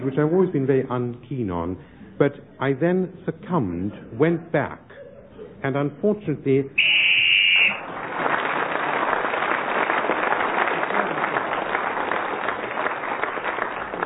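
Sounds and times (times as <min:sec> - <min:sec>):
speech: 0:00.1 - 0:04.9, 0:05.6 - 0:06.9
whistle blown to end a turn: 0:06.8 - 0:07.8
audience applause: 0:07.6 - 0:14.0.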